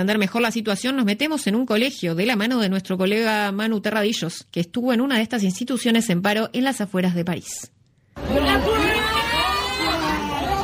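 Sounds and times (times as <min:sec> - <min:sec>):
speech: 0:00.0 - 0:08.9
students shouting at protest: 0:08.2 - 0:10.6.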